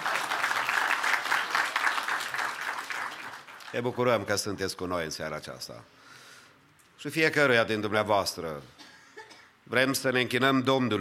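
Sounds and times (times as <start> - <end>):
audience applause: 0.0 - 3.9
speech: 3.7 - 6.2, 7.0 - 8.8, 9.7 - 10.9.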